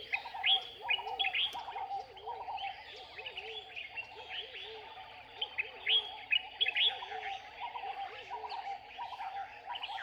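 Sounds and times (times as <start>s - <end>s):
turtle doves cooing on Guior island: 0.0s - 1.6s
morning bird chorus on Guior island, Sine Saloum, Senegal: 0.0s - 9.9s.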